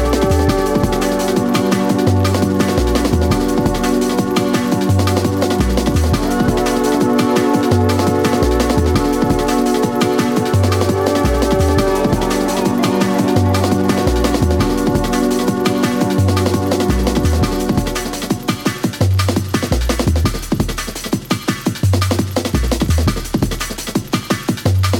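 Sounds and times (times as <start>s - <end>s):
jungle music: 0.0s - 24.9s.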